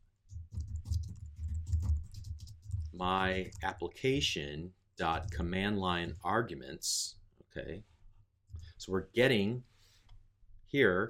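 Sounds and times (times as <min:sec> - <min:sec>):
typing on a computer keyboard: 0:00.3 - 0:03.8, 0:05.1 - 0:05.5
speech: 0:03.0 - 0:07.9, 0:08.8 - 0:09.7, 0:10.7 - 0:11.0.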